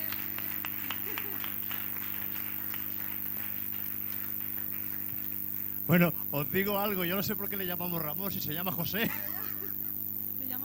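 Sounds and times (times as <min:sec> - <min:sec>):
audience applause: 0:00.0 - 0:06.1
laughter: 0:00.8 - 0:01.7, 0:08.8 - 0:09.9
speech: 0:05.9 - 0:09.4.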